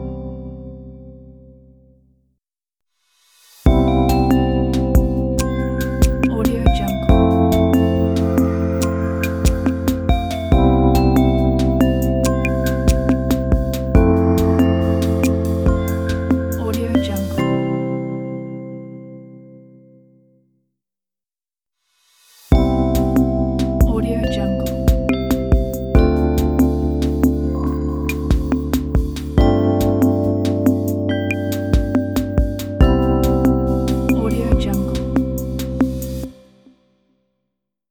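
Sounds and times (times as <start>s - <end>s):
ambient ident: 3.7s - 18.7s, 22.5s - 36.3s.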